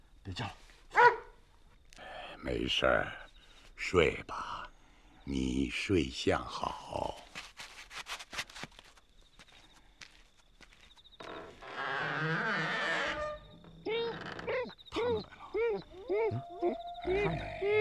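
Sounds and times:
speech: 0.3s - 0.6s, 2.4s - 3.2s, 3.8s - 4.5s, 5.3s - 7.5s
wolf growling and yelping: 12.0s - 17.7s.

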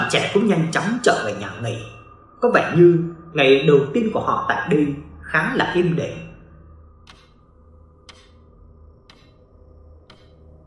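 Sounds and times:
speech: 0.0s - 6.3s
clock ticking: 7.0s - 10.6s.

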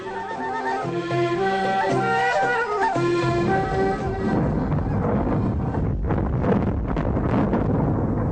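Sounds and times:
steady tonal notes: 0.0s - 6.7s
dynamite explosion inside a tunnel: 4.1s - 8.2s.

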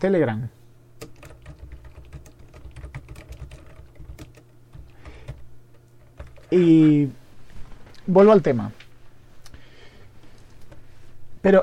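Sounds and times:
speech: 0.0s - 0.6s, 6.5s - 7.2s, 8.1s - 8.8s, 11.4s - 11.6s
rapid computer-keyboard typing of a Telegram message: 1.0s - 6.7s.

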